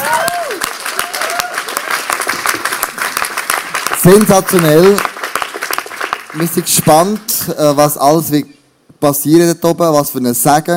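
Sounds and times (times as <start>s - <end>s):
audience applause: 0.0s - 7.3s
speech: 4.0s - 5.1s, 6.3s - 10.7s.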